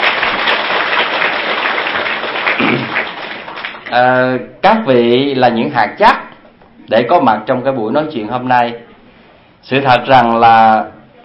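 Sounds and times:
audience applause at a talk in a Buddhist practice hall: 0:00.0 - 0:04.0
speech: 0:03.9 - 0:06.3, 0:06.9 - 0:08.8, 0:09.6 - 0:11.0.

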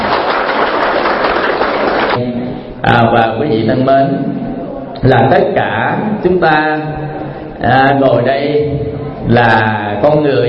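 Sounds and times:
crowd applauding: 0:00.0 - 0:02.2
speech: 0:02.8 - 0:04.4, 0:05.0 - 0:10.4.

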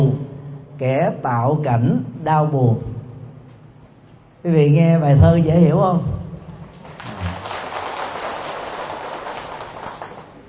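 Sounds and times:
speech: 0:00.8 - 0:02.9, 0:04.4 - 0:06.2
audience applause: 0:06.7 - 0:10.4.

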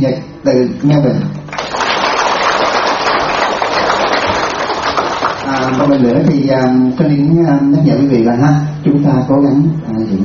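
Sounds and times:
speech: 0:00.0 - 0:01.4, 0:05.7 - 0:10.2
audience applause: 0:01.5 - 0:06.2.

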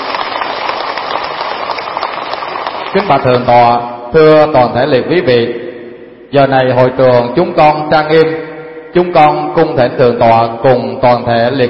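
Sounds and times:
crowd in a hall applauding at a Buddhist ceremony: 0:00.0 - 0:03.4
speech: 0:02.9 - 0:05.6, 0:06.3 - 0:11.6.

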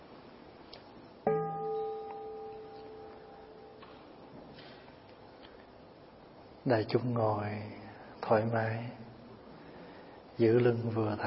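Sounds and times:
meditation bell stroke: 0:01.3 - 0:04.6
speech: 0:06.6 - 0:09.0, 0:10.4 - 0:11.2.

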